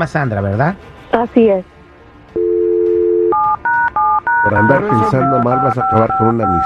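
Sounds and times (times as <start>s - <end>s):
speech: 0.0s - 1.8s, 4.4s - 6.6s
telephone dial tone: 2.4s - 6.6s
telephone keypad beeps: 2.4s - 6.6s.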